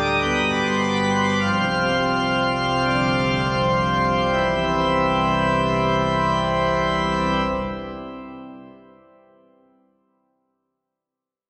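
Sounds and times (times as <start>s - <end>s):
phantom organ: 0.0s - 9.1s.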